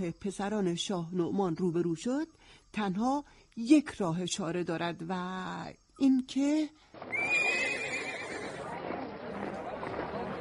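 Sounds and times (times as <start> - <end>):
speech: 0.0 - 7.4
horse with a rider clip-clopping hoofbeats: 6.9 - 10.3
horse whinnying: 7.0 - 8.8.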